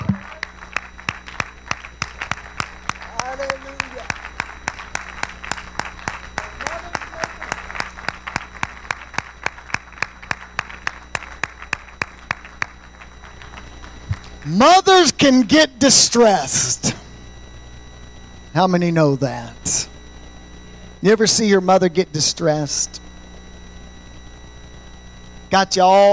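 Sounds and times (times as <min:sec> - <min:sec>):
audience clapping hands: 0:00.0 - 0:14.4
speech: 0:14.6 - 0:17.0, 0:18.6 - 0:19.8, 0:21.0 - 0:23.0, 0:25.5 - 0:26.1.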